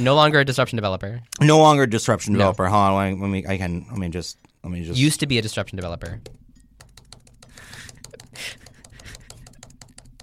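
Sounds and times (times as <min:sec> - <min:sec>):
speech: 0:00.0 - 0:06.4
loud computer keyboard typing: 0:05.2 - 0:10.2.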